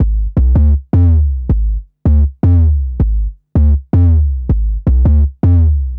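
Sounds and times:
booming drum and bass bass: 0.0s - 5.9s.

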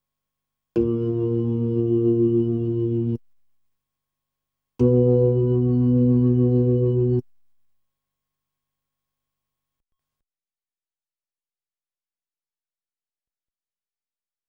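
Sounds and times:
Hammond B3 organ: 0.8s - 3.2s, 4.8s - 7.2s.

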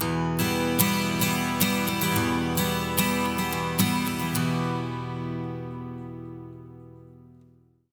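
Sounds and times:
acoustic guitar loop: 0.0s - 7.7s.

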